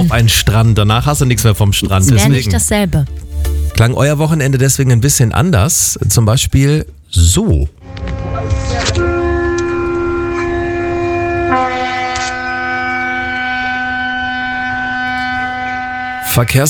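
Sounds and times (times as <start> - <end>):
speech: 0.0 - 8.2, 16.4 - 16.6
ship horn: 7.8 - 16.6.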